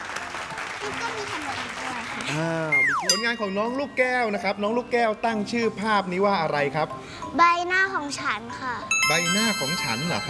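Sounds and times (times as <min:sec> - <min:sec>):
audience applause: 0:00.0 - 0:02.6
speech: 0:00.8 - 0:10.2.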